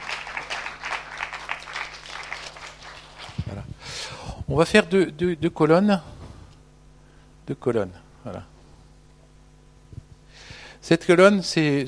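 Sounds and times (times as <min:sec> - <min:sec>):
audience applause: 0:00.0 - 0:03.6
speech: 0:04.5 - 0:06.1, 0:07.5 - 0:08.5, 0:10.9 - 0:11.8.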